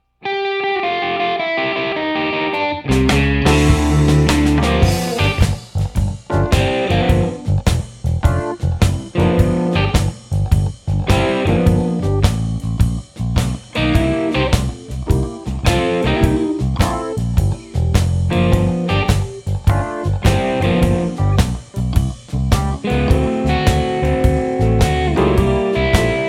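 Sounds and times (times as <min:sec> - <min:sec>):
blues music: 0:00.2 - 0:26.2.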